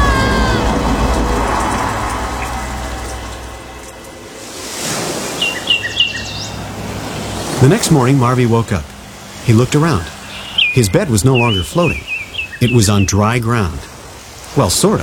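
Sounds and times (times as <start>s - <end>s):
ocean waves in a children's story: 0.0s - 15.0s
high chirps: 1.5s - 7.4s, 9.4s - 13.4s
speech: 7.6s - 8.9s, 9.5s - 10.2s, 10.8s - 13.9s, 14.6s - 15.0s.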